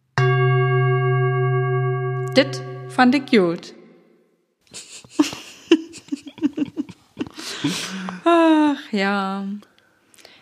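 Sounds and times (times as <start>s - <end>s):
gong sound effect: 0.0s - 4.2s
speech: 2.4s - 3.8s, 7.6s - 9.7s
laughter: 4.7s - 8.5s.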